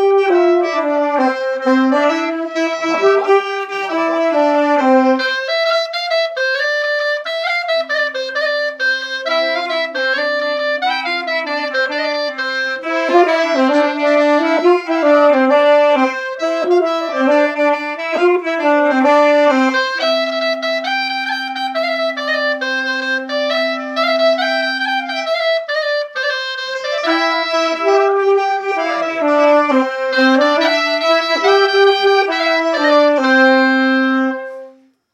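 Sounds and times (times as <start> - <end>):
clarinet at a festival: 0.0 - 35.0.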